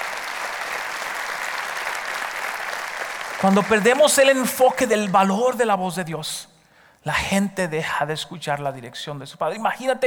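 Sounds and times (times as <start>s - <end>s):
audience applause: 0.0s - 4.4s
speech: 3.4s - 10.0s.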